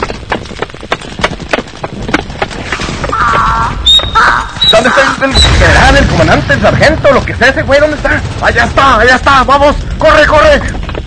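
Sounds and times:
donkey hooves clip-clopping at a beach: 0:00.0 - 0:05.3, 0:07.8 - 0:11.0
speech: 0:04.8 - 0:10.8.

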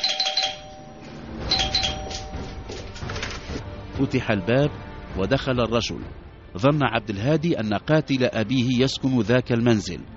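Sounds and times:
doorbell ringing at a house door: 0:00.0 - 0:02.8
speech: 0:04.0 - 0:10.1.

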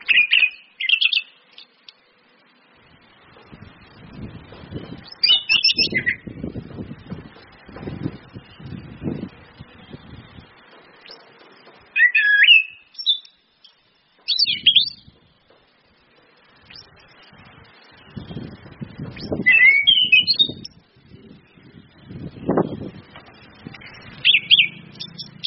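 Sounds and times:
orange-headed thrush song: 0:00.0 - 0:01.7, 0:04.7 - 0:06.5, 0:11.9 - 0:15.2, 0:19.2 - 0:22.8, 0:23.8 - 0:25.4
low rumbling noise: 0:02.8 - 0:11.0, 0:16.6 - 0:19.5, 0:20.4 - 0:25.4.

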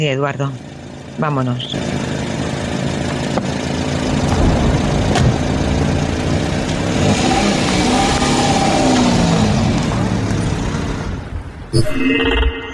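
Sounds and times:
speech: 0:00.0 - 0:02.0, 0:11.8 - 0:12.4
car engine starting and running: 0:00.0 - 0:11.7.

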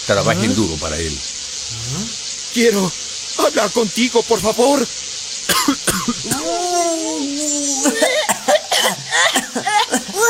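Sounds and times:
drawn-out wavering vocal whine: 0:00.0 - 0:02.9, 0:05.5 - 0:10.2
speech: 0:00.1 - 0:10.2
quick breathy cough-like sounds: 0:05.5 - 0:06.5, 0:07.8 - 0:10.2
sneezing: 0:05.5 - 0:10.2.

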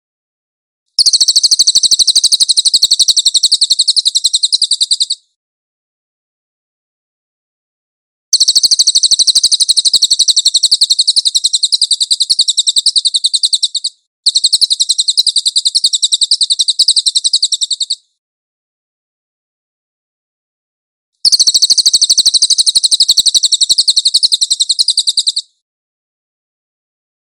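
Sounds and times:
cililin bird singing shrill trill: 0:01.0 - 0:05.4, 0:08.4 - 0:18.2, 0:21.2 - 0:25.6.

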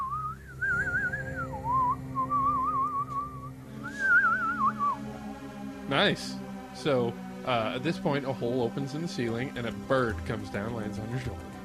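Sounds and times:
flute played on phone app: 0:00.0 - 0:05.2
speech: 0:05.9 - 0:11.5.

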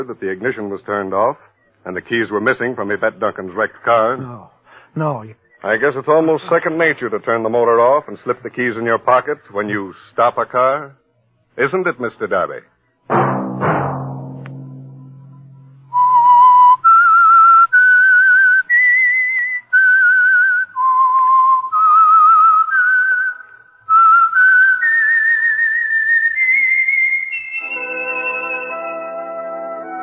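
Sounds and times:
speech: 0:00.0 - 0:11.0, 0:11.6 - 0:13.3
whistled theme tune: 0:15.8 - 0:30.0.

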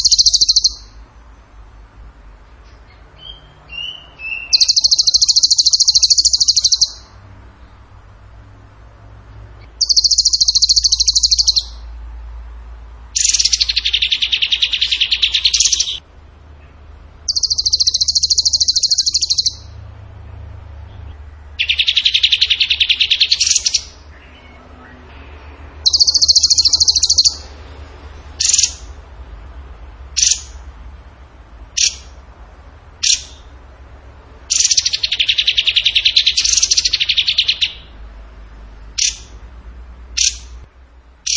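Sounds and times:
bird trilling: 0:00.0 - 0:01.0, 0:02.8 - 0:07.2, 0:09.6 - 0:12.0, 0:13.1 - 0:16.0, 0:17.2 - 0:19.8, 0:21.6 - 0:25.2, 0:25.8 - 0:27.6, 0:28.4 - 0:29.0, 0:30.2 - 0:30.6, 0:31.7 - 0:32.2, 0:33.0 - 0:33.5, 0:34.5 - 0:38.0, 0:38.9 - 0:39.4, 0:40.2 - 0:40.6.

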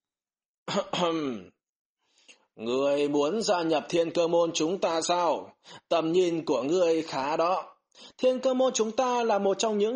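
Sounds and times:
speech: 0:00.7 - 0:01.5, 0:02.6 - 0:09.9
old man's light gravelly throat clearing: 0:00.7 - 0:01.6.

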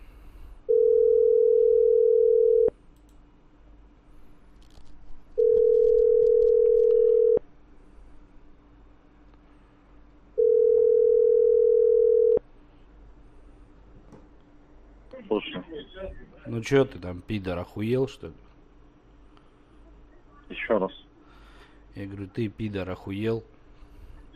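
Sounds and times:
low constant hum: 0:00.0 - 0:24.3
telephone line tones while a call is placed: 0:00.7 - 0:02.7, 0:05.4 - 0:07.4, 0:10.4 - 0:12.4
speech: 0:16.6 - 0:18.5, 0:20.7 - 0:21.0, 0:22.0 - 0:23.6.

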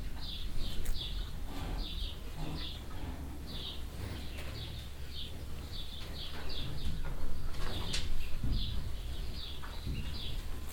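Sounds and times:
cows eating at a trough in a cowshed: 0:00.0 - 0:10.7.

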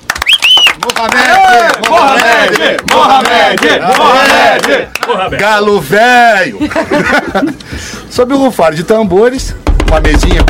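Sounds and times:
standing audience applauding and cheering enthusiastically: 0:00.0 - 0:05.2
speech: 0:00.9 - 0:10.4
laughter: 0:06.4 - 0:07.8.

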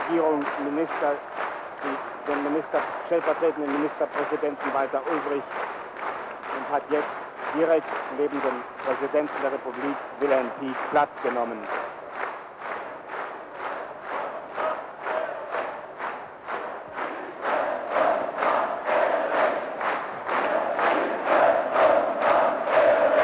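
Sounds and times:
speech: 0:00.1 - 0:05.8, 0:06.6 - 0:11.8
crowd chanting a greeting: 0:13.4 - 0:23.2.

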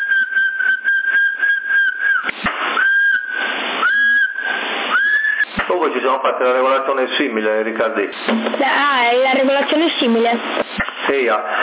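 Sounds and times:
whistling into CB radio microphone: 0:00.0 - 0:05.8
hissy crackling radio channel: 0:00.0 - 0:11.6
speech: 0:05.9 - 0:11.6.

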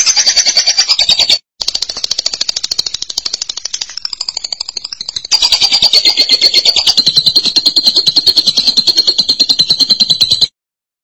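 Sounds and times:
lovebird chattering: 0:00.1 - 0:10.4.

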